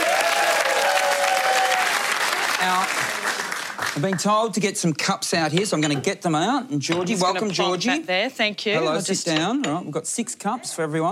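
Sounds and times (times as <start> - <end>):
audience applause welcoming a guest on a show set: 0.0 - 4.3
speech: 4.0 - 11.1.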